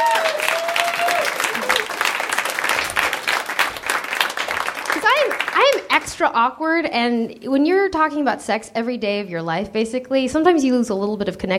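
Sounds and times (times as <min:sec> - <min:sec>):
audience applause: 0:00.0 - 0:06.0
speech: 0:06.0 - 0:11.5.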